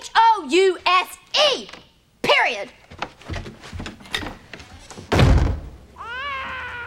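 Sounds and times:
speech: 0.4s - 1.8s, 2.4s - 2.8s
door slamming: 3.8s - 5.8s
baby crying: 6.0s - 6.8s.

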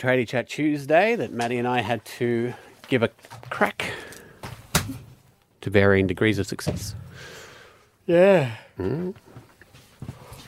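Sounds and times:
speech: 0.0s - 3.9s, 5.6s - 7.4s, 8.1s - 9.2s
person yawning: 8.2s - 9.2s.

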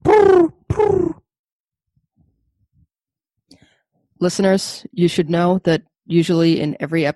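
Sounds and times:
person imitating a pigeon: 0.0s - 1.3s
speech: 4.2s - 7.1s.

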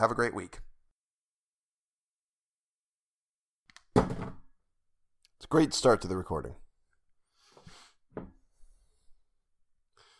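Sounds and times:
speech: 0.0s - 0.7s, 5.4s - 6.6s
iPod dropped with dull thunk and short rattle: 3.9s - 4.4s.

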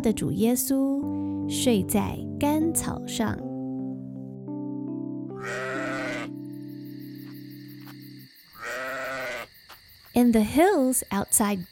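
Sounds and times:
speech: 0.0s - 3.5s, 10.2s - 11.7s
sheep bleating: 5.4s - 6.4s, 8.6s - 9.5s.

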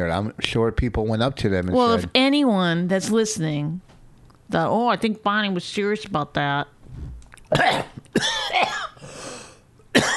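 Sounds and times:
speech: 0.0s - 3.9s, 4.5s - 6.8s, 7.5s - 7.9s
coughing after choking on saliva: 7.5s - 9.0s, 9.9s - 10.1s.

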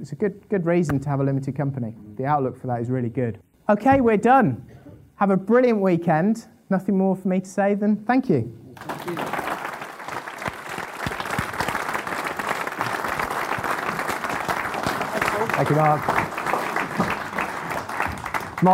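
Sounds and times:
speech: 0.0s - 9.4s, 15.6s - 16.2s
audience applause: 8.8s - 18.7s.

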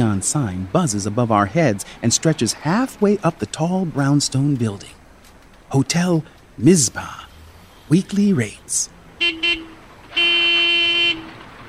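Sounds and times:
speech: 0.1s - 5.0s, 5.7s - 7.3s, 7.9s - 9.6s
cars and trucks honking horns under the viaduct: 8.1s - 11.6s.

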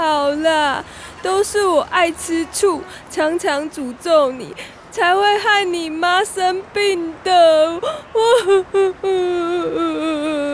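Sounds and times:
speech: 0.4s - 10.5s
person crying loudly: 7.8s - 10.5s.

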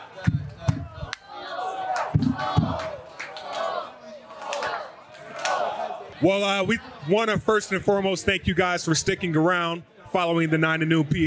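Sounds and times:
football fans' chant: 0.0s - 11.2s
heavy rhythmic booms: 0.2s - 1.1s, 2.1s - 3.0s
speech: 6.2s - 11.2s.

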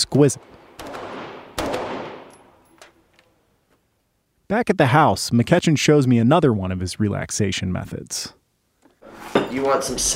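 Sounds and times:
speech: 0.2s - 0.5s, 4.5s - 8.4s, 9.5s - 10.1s
gunfire at a shooting range: 0.4s - 2.6s.

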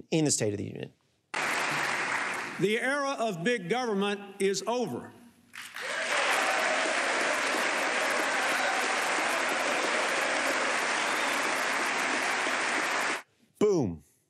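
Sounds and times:
speech: 0.1s - 1.0s, 2.6s - 5.2s
crowd applause after State of the Union line: 1.4s - 2.7s, 5.6s - 13.2s.

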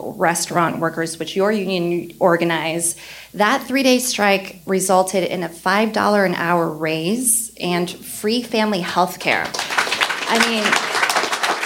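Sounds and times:
speech: 0.1s - 9.7s, 10.3s - 10.9s
audience applause: 9.4s - 11.6s.

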